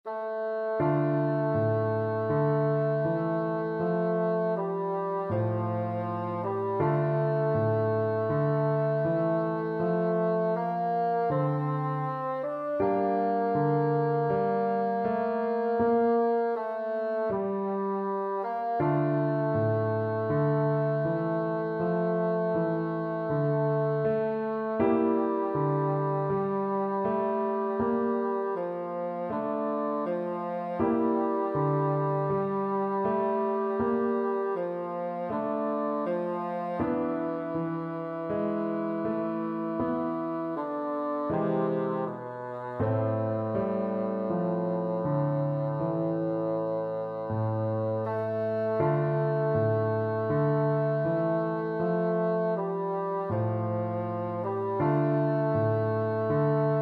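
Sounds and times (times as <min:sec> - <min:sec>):
bassoon: 0:00.0 - 0:56.8.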